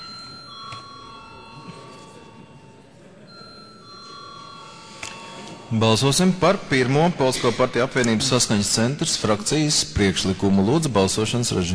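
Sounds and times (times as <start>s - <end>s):
parliament voting bell ringing: 0.0s - 8.9s
low murmur of voices: 0.0s - 11.7s
speech: 5.7s - 11.7s.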